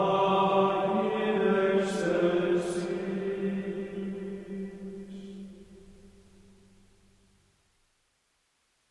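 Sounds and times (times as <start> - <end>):
Gregorian chant: 0.0 - 6.1.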